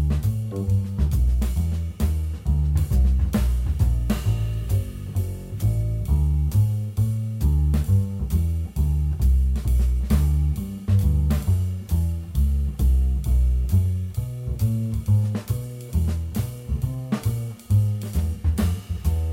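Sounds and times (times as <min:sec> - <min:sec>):
jazz piano play-along track: 0:00.0 - 0:19.3.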